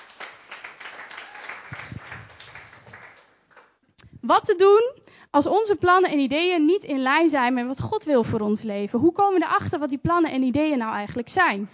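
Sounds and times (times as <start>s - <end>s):
audience applause: 0.0s - 3.7s
speech: 4.3s - 11.7s.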